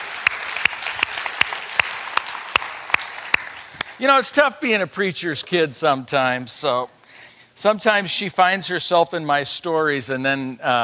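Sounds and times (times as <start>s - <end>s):
audience applause: 0.0s - 4.0s
speech: 4.0s - 7.0s, 7.6s - 10.8s.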